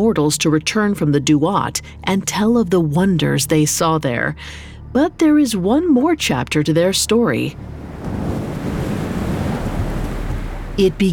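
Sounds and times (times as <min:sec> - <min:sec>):
speech: 0:00.0 - 0:08.3, 0:10.8 - 0:11.1
fierce desert wind howling through the streets of Memphis: 0:07.3 - 0:11.1.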